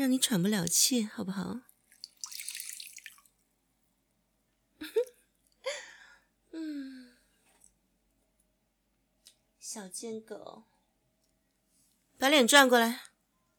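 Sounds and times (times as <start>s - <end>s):
speech: 0.0s - 1.7s, 9.8s - 10.8s, 12.2s - 13.1s
tissue soaked in dripping water: 0.5s - 3.5s.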